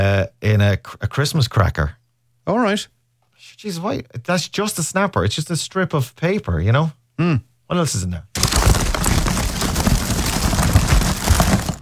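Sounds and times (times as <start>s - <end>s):
speech: 0.0s - 8.8s
empty plastic hand sanitizer gel bottle being squeezed: 8.4s - 11.8s.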